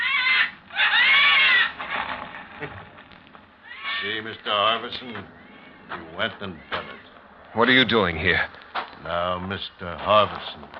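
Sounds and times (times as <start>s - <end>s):
birds cawing: 0.0s - 7.9s
speech: 4.0s - 6.9s, 7.5s - 10.7s.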